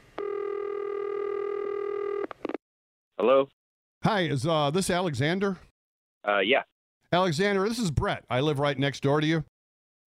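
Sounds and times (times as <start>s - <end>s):
steady buzzy telephone line beep: 0.2s - 2.6s
speech: 3.2s - 9.5s.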